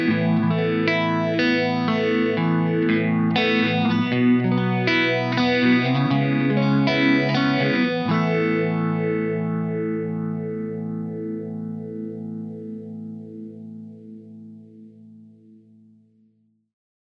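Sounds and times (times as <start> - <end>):
clean Stratocaster electric guitar through a Blackstar ID Core Beam amplifier: 0.0 - 16.1.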